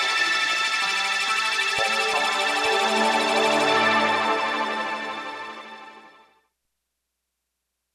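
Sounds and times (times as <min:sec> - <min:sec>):
digital wavetable synthesizer: 0:00.0 - 0:06.2.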